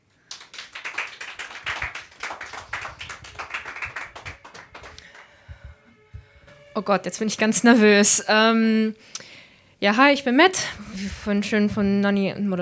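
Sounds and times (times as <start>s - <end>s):
audience applause for a performer: 0.3s - 5.4s
speech: 6.8s - 9.2s, 9.8s - 12.6s.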